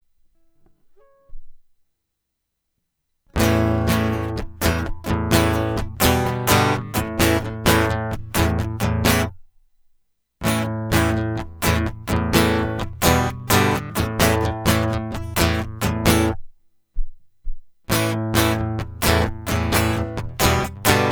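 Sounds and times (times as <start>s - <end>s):
guitar loop: 3.4s - 9.4s, 10.4s - 16.4s, 17.9s - 21.1s.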